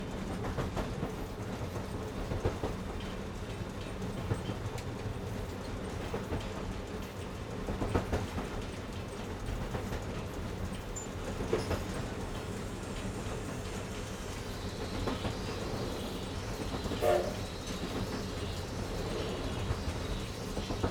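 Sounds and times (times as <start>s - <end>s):
steam locomotive powering and coasting heard inside the cab: 0.0s - 20.8s.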